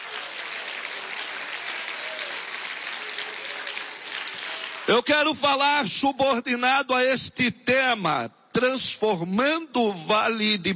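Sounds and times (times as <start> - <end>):
audience applauding: 0.0 - 5.1
speech: 4.9 - 10.7.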